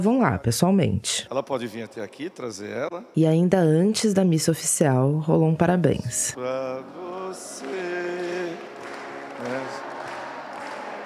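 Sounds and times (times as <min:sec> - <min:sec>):
speech: 0:00.0 - 0:08.1
applause: 0:07.0 - 0:11.0.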